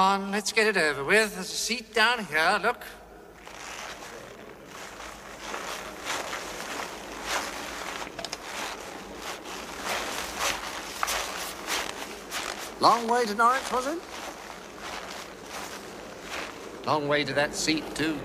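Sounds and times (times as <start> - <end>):
speech: 0.0 - 3.0, 12.8 - 14.2, 16.8 - 18.2
creaking as a man crosses his leg: 3.4 - 17.0.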